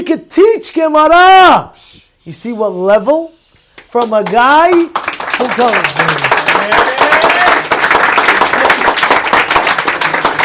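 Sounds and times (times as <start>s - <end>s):
speech: 0.0s - 6.9s
audience applause: 4.7s - 10.4s.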